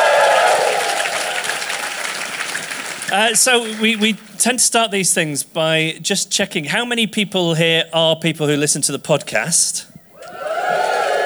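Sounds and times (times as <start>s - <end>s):
audience applause: 0.0s - 4.4s, 10.2s - 11.2s
speech: 3.1s - 9.9s.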